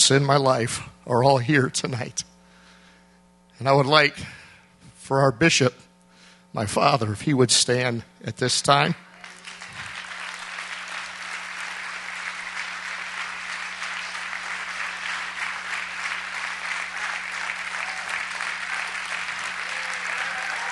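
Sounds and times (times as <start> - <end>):
speech: 0.1 - 2.3, 3.6 - 4.4, 5.1 - 5.8, 6.5 - 9.1
audience applause: 9.2 - 20.7.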